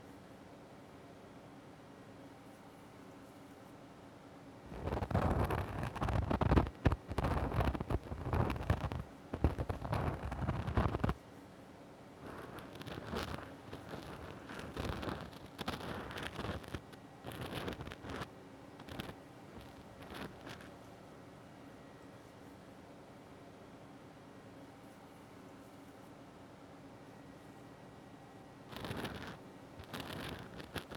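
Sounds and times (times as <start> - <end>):
ear cleaning on the left side: 4.7 - 11.2, 12.2 - 20.7, 28.7 - 30.9.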